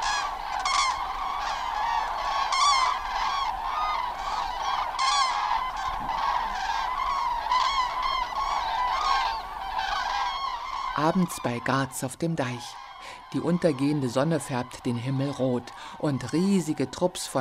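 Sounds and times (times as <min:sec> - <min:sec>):
flock of common cranes calling: 0:00.0 - 0:17.4
speech: 0:11.0 - 0:17.4.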